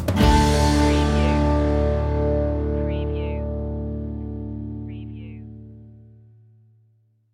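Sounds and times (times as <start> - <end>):
musical stinger: 0.2 - 5.0.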